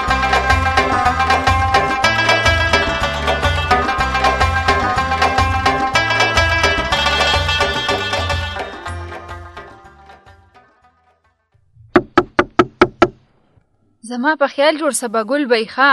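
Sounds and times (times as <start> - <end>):
music: 0.0 - 12.2
knocking on a door: 11.9 - 13.2
speech: 14.1 - 15.9.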